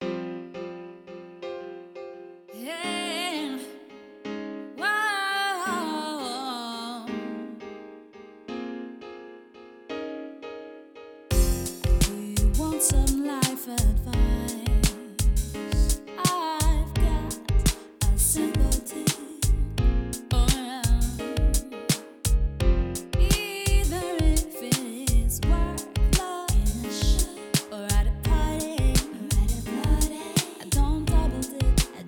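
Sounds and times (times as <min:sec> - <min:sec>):
chill vocal music at 432 Hz: 0:02.6 - 0:04.0, 0:04.7 - 0:07.7, 0:11.3 - 0:22.4, 0:23.0 - 0:32.0.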